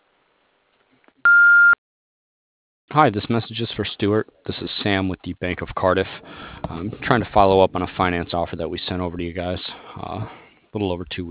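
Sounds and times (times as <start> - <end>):
answering machine beep: 1.3 - 1.8
speech: 2.9 - 11.2.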